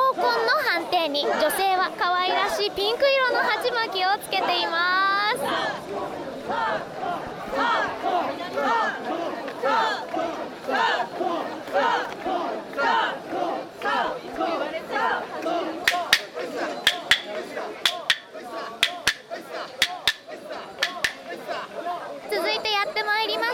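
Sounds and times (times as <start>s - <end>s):
crowd chatter: 0.0s - 23.5s
women's voices shouting in chant while carrying portable shrine: 0.0s - 23.5s
speech: 1.0s - 17.8s
sharp clap-like cracks: 15.8s - 21.3s.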